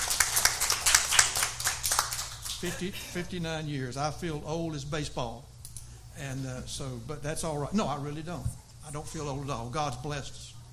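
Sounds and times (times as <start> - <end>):
small audience clapping for a 59th wedding anniversary: 0.0 - 2.8
speech: 2.6 - 5.5, 6.2 - 10.5.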